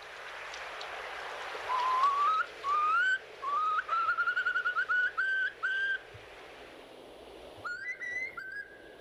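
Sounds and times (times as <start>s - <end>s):
sea wind: 0.0s - 8.9s
Far Eastern curlew call: 1.7s - 6.1s, 7.6s - 8.9s.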